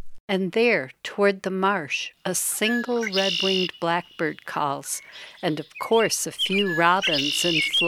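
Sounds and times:
speech: 0:00.3 - 0:07.8
far-off drumming of a ruffed grouse: 0:02.7 - 0:07.8.

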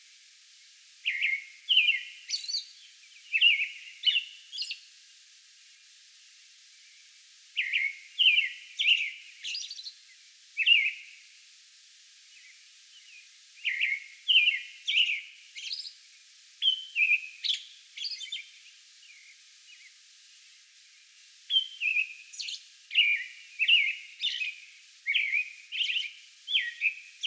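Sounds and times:
American robin singing: 0:01.0 - 0:04.8, 0:07.6 - 0:10.0, 0:10.6 - 0:11.0, 0:12.4 - 0:16.0, 0:16.6 - 0:19.9, 0:21.5 - 0:27.2.

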